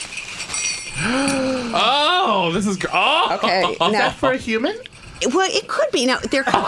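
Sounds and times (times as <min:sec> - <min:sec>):
dog doorknob potty bells jingling: 0:00.0 - 0:06.4
voice sliding up and down in pitch: 0:01.0 - 0:02.4
speech: 0:02.5 - 0:06.6
laughter: 0:03.0 - 0:04.2, 0:06.3 - 0:06.6.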